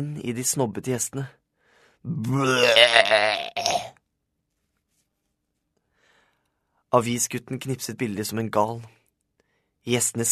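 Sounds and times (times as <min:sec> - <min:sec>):
speech: 0:00.0 - 0:01.4, 0:02.0 - 0:03.6, 0:06.9 - 0:09.0, 0:09.8 - 0:10.3
vomiting: 0:02.3 - 0:03.9.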